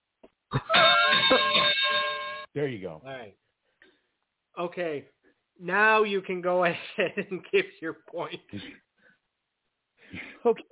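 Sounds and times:
bell ringing to end a round: 0.6 - 2.5
speech: 2.6 - 3.5, 4.6 - 8.8, 10.1 - 10.6.

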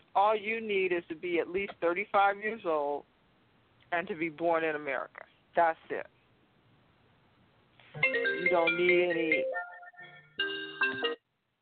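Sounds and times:
speech: 0.2 - 3.1, 3.9 - 6.2, 8.0 - 9.6
phone ringtone melody: 8.0 - 11.2.

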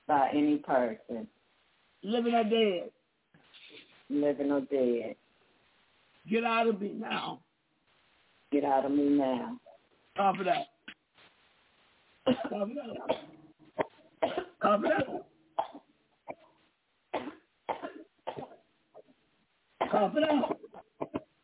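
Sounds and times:
speech: 0.1 - 1.4, 2.0 - 3.0, 4.1 - 5.2, 6.2 - 7.5, 8.5 - 10.7, 12.2 - 13.3, 14.2 - 15.3, 19.9 - 20.6
person coughing: 12.2 - 16.5, 17.2 - 18.6, 19.8 - 21.3.

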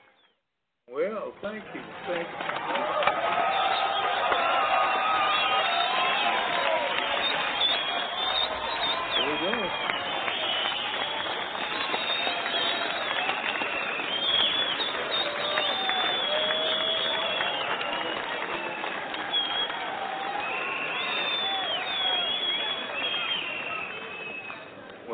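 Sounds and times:
speech: 1.0 - 3.2
audience applause: 1.6 - 25.0.

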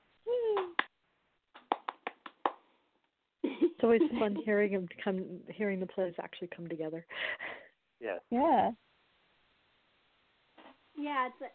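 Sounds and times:
applause: 1.6 - 2.6
speech: 3.8 - 7.4, 8.0 - 8.8, 11.0 - 11.5.

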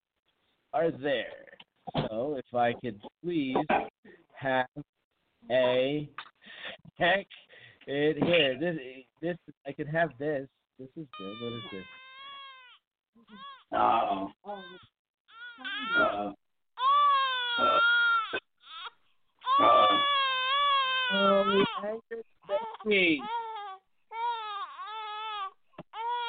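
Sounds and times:
speech: 0.7 - 12.0, 13.2 - 14.9, 15.6 - 16.4, 17.6 - 18.5, 19.6 - 20.2, 21.1 - 23.4
baby crying: 11.1 - 21.8, 22.5 - 26.2.

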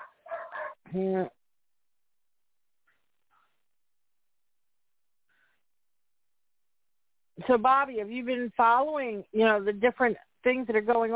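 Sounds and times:
dog barking: 0.0 - 0.8
speech: 0.9 - 1.4, 7.5 - 11.1.

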